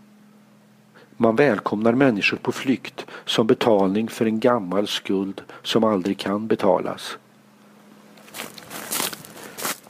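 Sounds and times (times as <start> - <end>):
speech: 1.2 - 7.2
footsteps crunching across the gravel roll-call square of Dachau concentration camp: 8.2 - 9.8.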